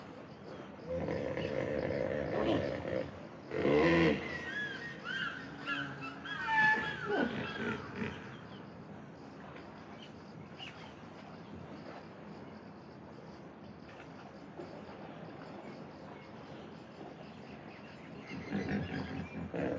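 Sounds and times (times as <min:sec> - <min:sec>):
hippopotamus call of deep pulsed grunting honks: 0:00.9 - 0:04.6, 0:05.1 - 0:08.5, 0:18.3 - 0:19.7.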